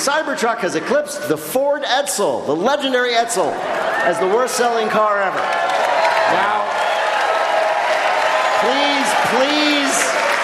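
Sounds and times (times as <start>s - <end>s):
speech: 0.1s - 6.6s
crowd applause: 3.6s - 10.4s
whoops and cheers: 5.0s - 10.4s.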